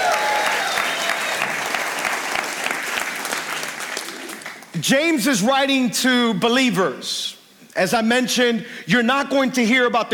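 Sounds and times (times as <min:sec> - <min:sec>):
church congregation applauding and cheering: 0:00.0 - 0:04.8
speech: 0:04.8 - 0:10.1.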